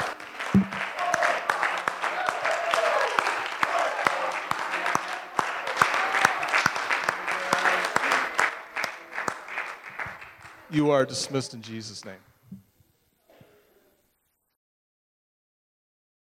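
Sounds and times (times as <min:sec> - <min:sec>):
audience clapping: 0:00.0 - 0:11.4
speech: 0:00.5 - 0:00.8, 0:10.7 - 0:12.3
voices and cheers: 0:00.8 - 0:08.5.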